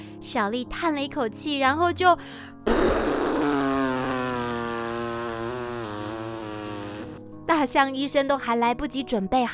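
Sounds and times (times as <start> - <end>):
speech: 0.2 - 3.0, 7.6 - 9.5
long loud fart sound effect: 2.7 - 7.2.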